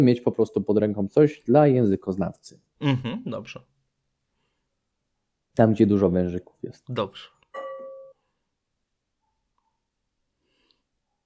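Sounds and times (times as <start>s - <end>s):
speech: 0.0s - 3.7s, 5.6s - 7.4s
notification chime: 7.6s - 8.2s.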